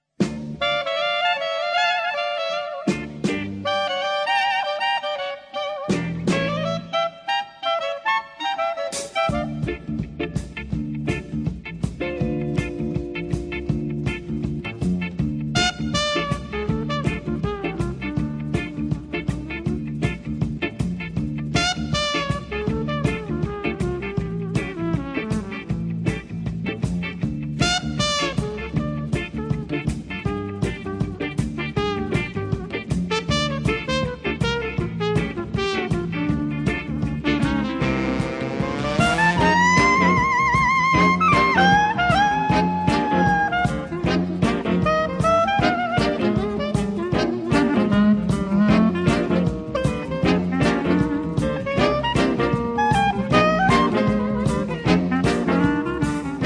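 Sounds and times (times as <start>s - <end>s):
blues music: 0.0s - 56.4s.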